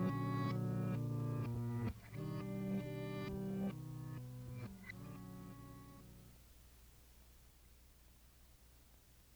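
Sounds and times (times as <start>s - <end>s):
organ: 0.0s - 6.3s.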